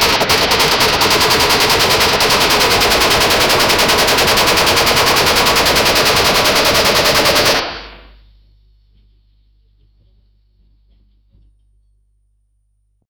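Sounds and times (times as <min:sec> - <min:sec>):
futuristic mech stomping: 0:00.2 - 0:08.1.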